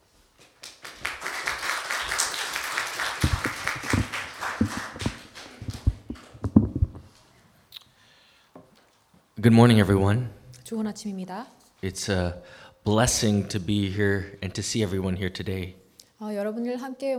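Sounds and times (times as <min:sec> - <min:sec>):
church congregation applause welcoming a speaker: 0:00.6 - 0:06.1
speech: 0:09.4 - 0:17.1.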